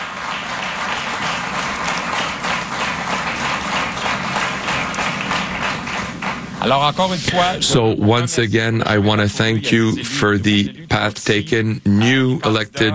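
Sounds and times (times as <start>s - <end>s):
audience applause: 0.0s - 7.5s
speech: 6.6s - 12.9s.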